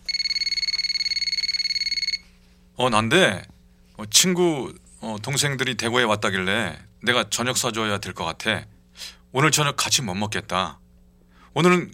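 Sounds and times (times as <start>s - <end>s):
telephone ringing: 0.0s - 2.3s
speech: 2.8s - 10.8s, 11.6s - 11.9s.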